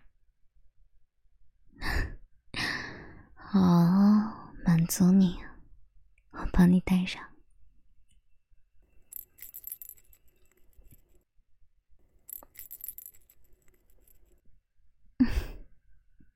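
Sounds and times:
speech: 3.5s - 3.9s, 4.9s - 5.5s, 6.6s - 7.3s
small bell jingling: 8.9s - 11.2s, 12.2s - 14.4s.

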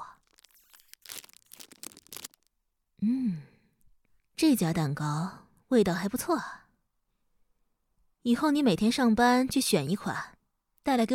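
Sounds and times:
plastic cake wrapping tearing: 0.0s - 2.5s
speech: 3.0s - 3.5s, 4.4s - 6.6s, 8.2s - 11.1s.

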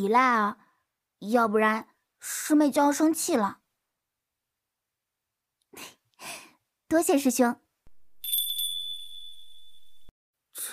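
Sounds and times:
speech: 0.0s - 0.6s, 1.2s - 3.6s, 5.8s - 7.6s
small bell worn on the left wrist ringing: 8.2s - 10.1s.

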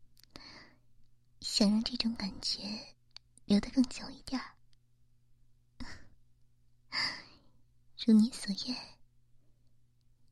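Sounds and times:
breathing close to the microphone: 0.2s - 0.9s, 6.9s - 7.7s
speech: 1.6s - 4.6s, 8.0s - 8.9s.

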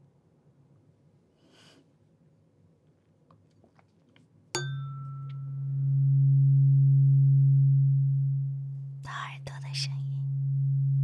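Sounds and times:
tuning fork struck and ringing: 4.6s - 9.0s, 10.2s - 11.0s.

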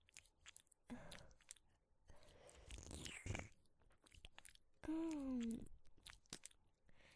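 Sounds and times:
ASMR tongue licking inside the ear: 0.0s - 7.1s
soft voiced sound: 4.8s - 5.7s.

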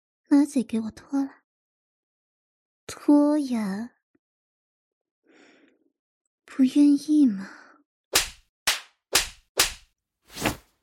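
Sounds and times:
speech: 0.3s - 1.4s, 2.9s - 4.0s, 6.5s - 7.6s
slaps across the face: 8.1s - 9.9s.

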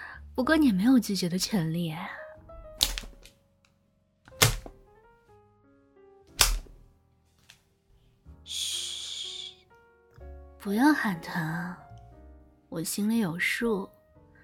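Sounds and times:
speech: 0.4s - 2.2s, 10.7s - 11.8s, 12.7s - 14.0s
leather whip cracking onto body: 6.4s - 6.7s.

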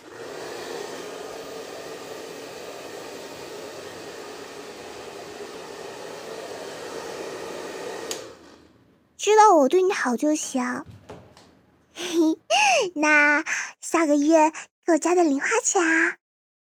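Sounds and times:
hair dryer blow-drying hair: 0.0s - 8.7s
hair dryer switch click: 8.0s - 8.3s
speech: 9.2s - 11.0s, 13.0s - 16.2s.

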